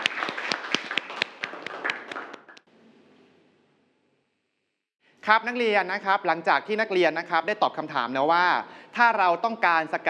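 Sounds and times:
classroom full of people clapping: 0.0s - 2.7s
speech: 5.3s - 10.0s.

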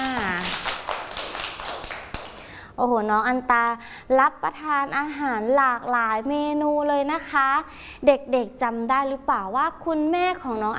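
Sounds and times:
children clapping for a classmate: 0.0s - 2.5s
speech: 2.8s - 10.7s.

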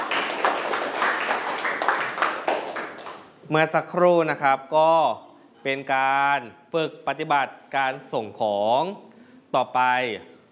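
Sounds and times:
audience clapping for a classmate: 0.0s - 3.4s
speech: 3.5s - 10.3s.

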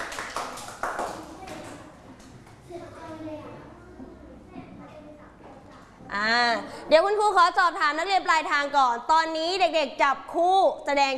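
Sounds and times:
group of children clapping in a classroom: 0.0s - 2.6s
kids chattering in a room: 1.1s - 6.2s
speech: 6.2s - 11.1s.

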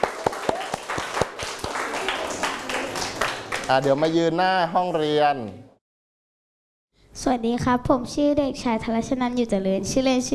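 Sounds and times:
classroom applause: 0.0s - 4.0s
speech: 3.7s - 5.7s, 7.2s - 10.3s.

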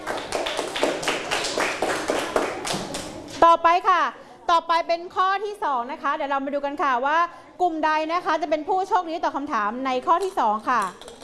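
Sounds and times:
children clapping: 0.0s - 3.3s
speech: 3.4s - 11.1s.

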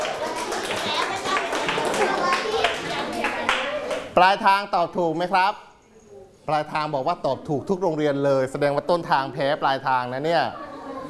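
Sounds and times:
clapping: 0.0s - 4.1s
speech: 4.2s - 5.7s, 6.4s - 11.0s.

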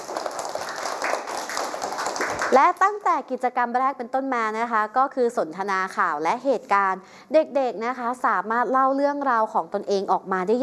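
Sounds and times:
group of children clapping for a classmate in a classroom: 0.0s - 2.6s
speech: 2.5s - 10.6s.

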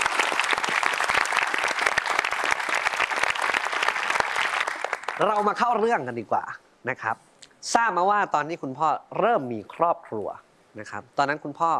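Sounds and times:
audience applause: 0.0s - 5.4s
speech: 5.2s - 11.7s.

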